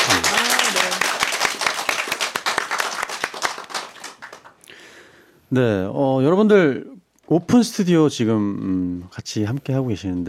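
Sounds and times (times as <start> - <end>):
studio audience applause: 0.0 - 5.0
speech: 5.5 - 10.2.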